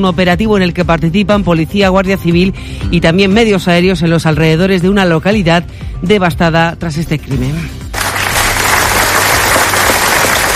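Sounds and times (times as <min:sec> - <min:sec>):
speech: 0:00.0 - 0:07.8
large crowd applause breaking a minute of silence: 0:08.0 - 0:10.5.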